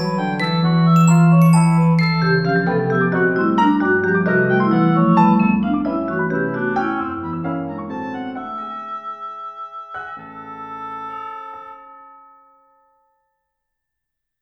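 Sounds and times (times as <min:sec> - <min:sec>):
percussion playing a waltz: 0:00.0 - 0:04.4
oboe playing a waltz: 0:00.0 - 0:12.6
piano playing a waltz: 0:00.0 - 0:13.2.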